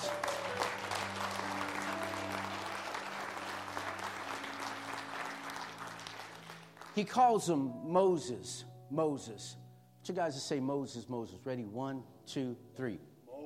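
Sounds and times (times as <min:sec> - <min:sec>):
audience clapping: 0:00.0 - 0:07.2
speech: 0:07.0 - 0:13.1.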